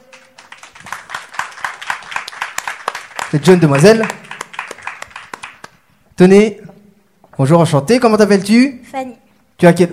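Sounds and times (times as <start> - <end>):
audience applause: 0.0 - 5.8
speech: 3.3 - 4.2, 6.2 - 6.6, 7.4 - 9.9.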